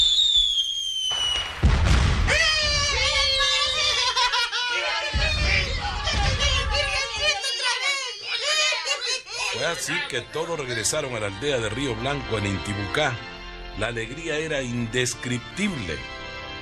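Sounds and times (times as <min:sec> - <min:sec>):
fireworks rockets exploding: 0:00.0 - 0:04.3, 0:05.1 - 0:07.4
laughter: 0:02.5 - 0:10.2
speech: 0:09.7 - 0:16.1.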